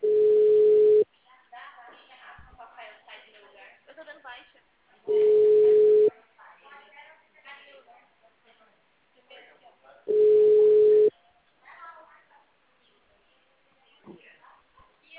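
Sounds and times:
telephone line tone beeping: 0.0 - 1.0, 5.1 - 6.1, 10.1 - 11.1
phone voices chattering: 5.1 - 6.1, 10.1 - 11.1.

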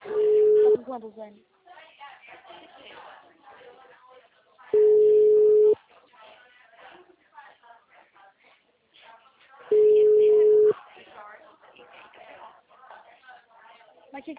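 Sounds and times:
telephone line beeps after a dropped call: 0.0 - 0.8, 4.8 - 5.8, 9.7 - 10.8
speech: 1.0 - 1.6, 14.2 - 14.3.

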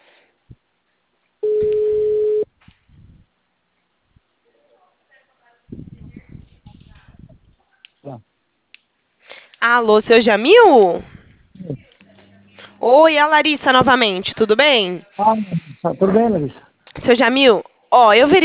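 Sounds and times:
telephone ringback tone on an outgoing call: 1.4 - 2.5
speech: 9.8 - 11.1, 12.8 - 18.4.

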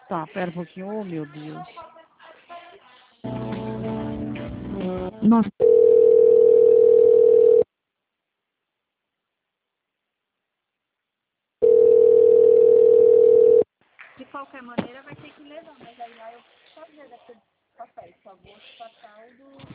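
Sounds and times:
speech: 0.1 - 2.0, 5.2 - 5.8
telephone line dial tone: 5.6 - 7.7, 11.6 - 13.7.

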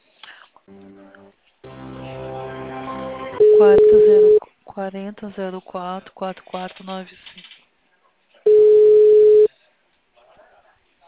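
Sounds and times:
telephone line tones during a call transfer: 3.4 - 4.4, 8.5 - 9.5
speech: 3.6 - 4.2, 4.8 - 7.3.

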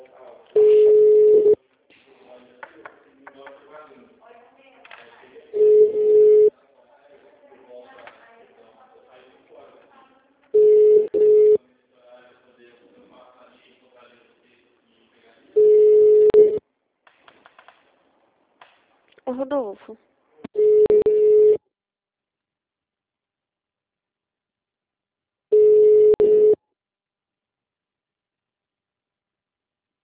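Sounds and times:
unanswered phone ringback tones: 0.6 - 1.6, 5.6 - 6.5, 10.6 - 11.6, 15.6 - 16.6, 20.6 - 21.6, 25.5 - 26.6
speech: 19.4 - 20.1.

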